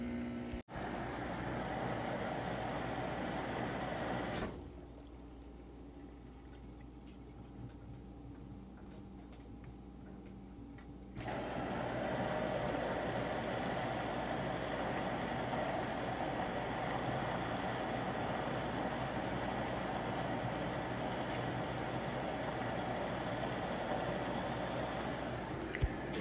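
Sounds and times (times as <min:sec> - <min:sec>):
washing machine running: 0:00.0 - 0:05.0, 0:11.1 - 0:26.1.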